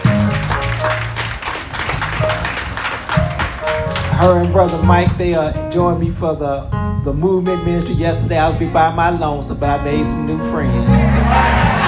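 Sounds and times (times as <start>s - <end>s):
audience applause: 0.0s - 4.9s, 11.2s - 11.8s
speech: 4.2s - 11.8s
laughter: 10.8s - 11.8s.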